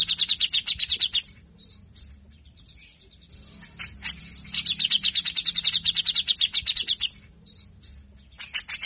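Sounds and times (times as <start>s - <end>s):
grey-cheeked bulbul rattling song: 0.0s - 8.8s.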